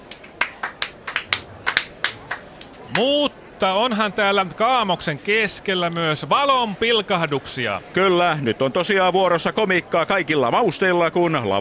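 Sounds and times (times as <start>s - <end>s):
scattered hand claps: 0.0s - 3.1s
speech: 2.9s - 11.5s.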